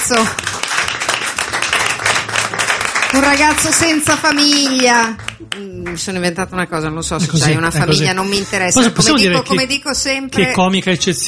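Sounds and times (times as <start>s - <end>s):
applause: 0.0s - 6.1s
speech: 0.1s - 0.4s, 3.2s - 11.2s.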